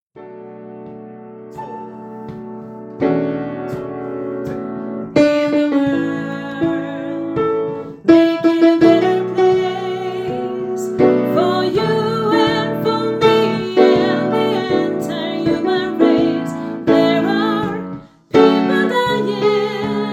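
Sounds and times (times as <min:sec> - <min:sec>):
soprano voice: 0:05.2 - 0:20.1.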